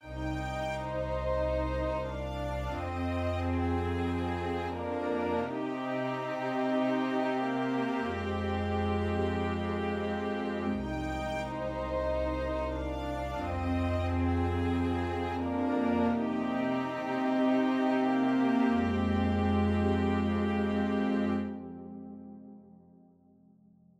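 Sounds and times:
Vermona DSR 3 strings: 0:00.0 - 0:22.4.

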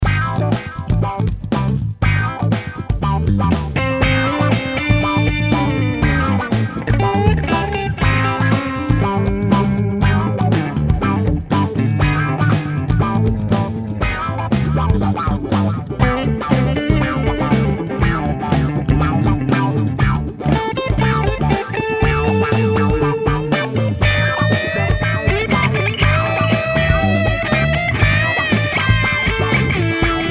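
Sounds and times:
electric guitar: 0:00.1 - 0:30.2.

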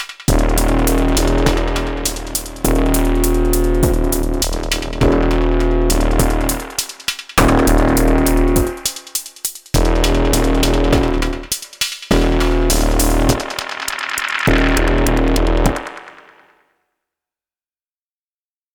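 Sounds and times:
Soma Pulsar-23 synth bass patch: 0:00.3 - 0:09.0, 0:09.8 - 0:11.5, 0:12.1 - 0:13.7, 0:14.5 - 0:16.0.

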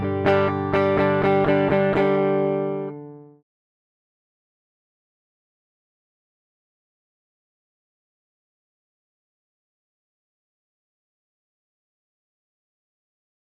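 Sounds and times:
direct input electric guitar: 0:00.0 - 0:03.4.

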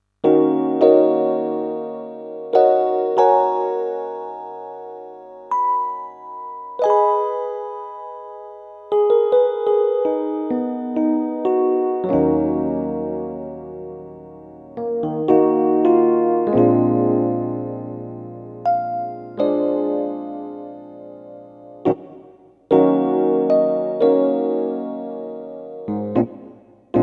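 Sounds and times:
Casio CDP-S360 dynamic electric piano: 0:00.2 - 0:27.0.

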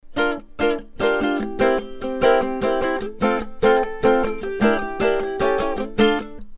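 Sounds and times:
ukulele: 0:00.0 - 0:06.5.

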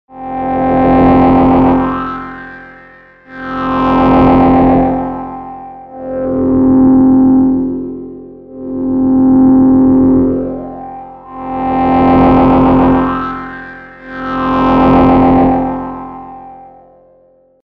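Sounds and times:
MiniBrute V void oscillators: 0:00.1 - 0:17.3.

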